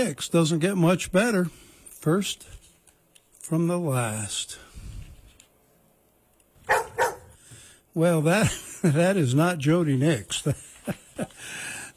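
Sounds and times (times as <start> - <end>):
speech: 0.0 - 2.6, 3.5 - 4.7, 8.0 - 11.7
dog barking inside a radio studio: 6.6 - 7.4.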